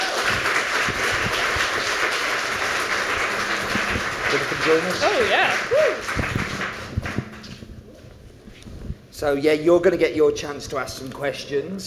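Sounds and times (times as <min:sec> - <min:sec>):
audience round of applause: 0:00.0 - 0:07.6
speech: 0:04.7 - 0:06.2, 0:09.2 - 0:11.8.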